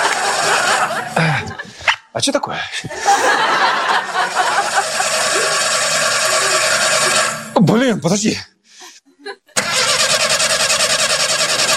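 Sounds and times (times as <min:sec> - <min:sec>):
laughter: 0:00.0 - 0:02.0, 0:02.8 - 0:07.4, 0:08.8 - 0:09.8
speech: 0:02.2 - 0:04.4, 0:07.7 - 0:08.6
car engine cranking in the cold: 0:04.3 - 0:07.6, 0:09.6 - 0:11.7.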